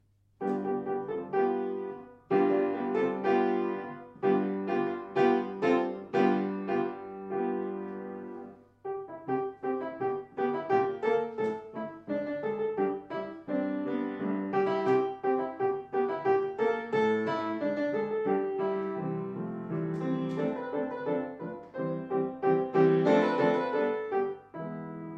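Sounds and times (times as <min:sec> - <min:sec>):
piano: 0:00.0 - 0:25.1.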